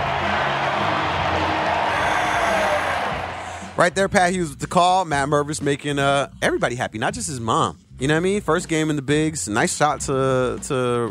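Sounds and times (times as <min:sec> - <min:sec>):
baseball stadium crowd cheering: 0:00.0 - 0:03.9
speech: 0:03.8 - 0:11.0.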